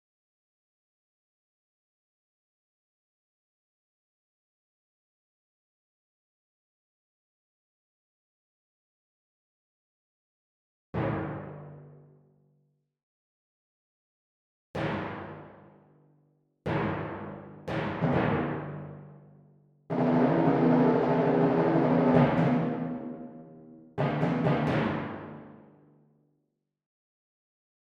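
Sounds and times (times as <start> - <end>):
timpani: 14.8 - 15.7, 16.7 - 19.2, 19.9 - 25.7.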